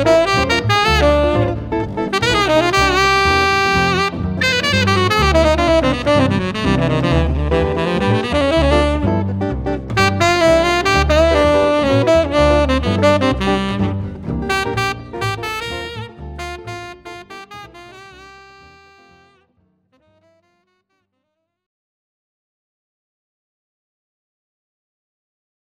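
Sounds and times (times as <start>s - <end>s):
jazz ensemble playing: 0.0s - 19.4s.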